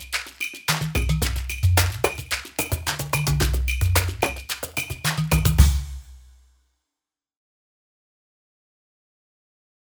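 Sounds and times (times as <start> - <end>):
world percussion: 0.0 - 6.6.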